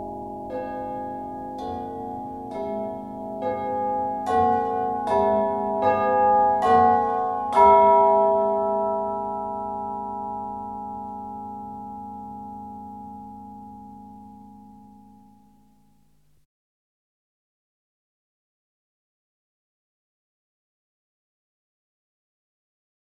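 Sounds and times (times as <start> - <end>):
tubular bells: 0.0 - 15.8.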